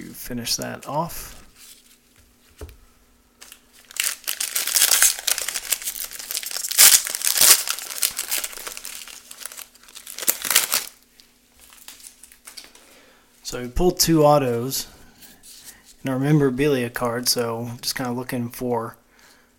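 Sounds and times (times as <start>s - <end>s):
speech: 0.3s - 1.4s, 13.5s - 15.0s, 16.0s - 19.0s
trading card pack plastic foil wrapper being torn and crumpled: 3.4s - 11.0s.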